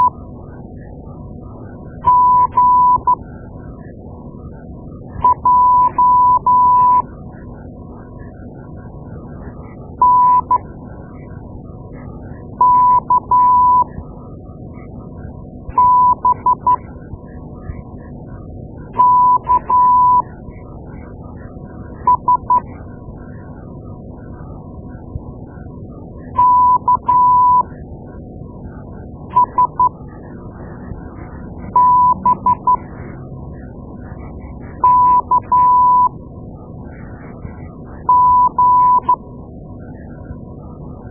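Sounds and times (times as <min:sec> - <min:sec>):
morse code beeps: 0:02.0 - 0:03.2, 0:05.2 - 0:07.1, 0:10.0 - 0:10.6, 0:12.6 - 0:13.9, 0:15.8 - 0:16.8, 0:19.0 - 0:20.2, 0:22.1 - 0:22.6, 0:26.4 - 0:27.7, 0:29.3 - 0:29.9, 0:31.7 - 0:32.8, 0:34.8 - 0:36.1, 0:38.1 - 0:39.2.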